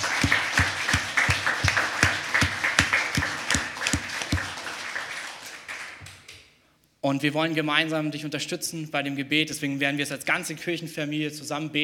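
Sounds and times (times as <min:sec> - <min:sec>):
audience applause: 0:00.0 - 0:06.3
speech: 0:07.0 - 0:11.8.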